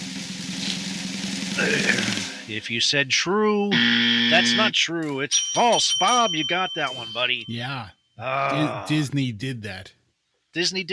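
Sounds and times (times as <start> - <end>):
drum roll: 0.0 - 2.5
speech: 1.6 - 10.0, 10.6 - 10.9.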